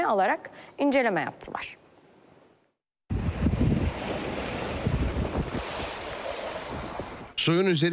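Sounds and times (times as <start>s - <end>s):
speech: 0.0s - 1.8s, 7.4s - 7.9s
foamy sea waves washing onto Seka Park beach in İzmit Kocaeli: 3.1s - 7.4s
heavy wind buffeting: 3.1s - 7.4s.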